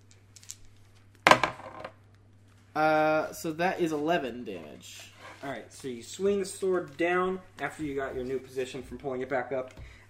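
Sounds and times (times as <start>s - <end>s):
dice rolled for damage rattling on a table: 0.0s - 2.1s
speech: 2.8s - 10.0s.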